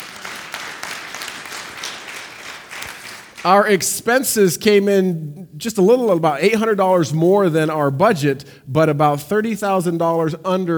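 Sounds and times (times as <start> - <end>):
applause from a church audience after a budget report: 0.0 - 3.5
speech: 3.4 - 10.7.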